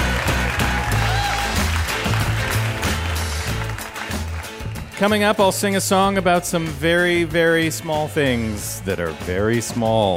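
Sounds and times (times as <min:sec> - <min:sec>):
audience applause: 0:00.0 - 0:05.2
speech: 0:05.0 - 0:10.1.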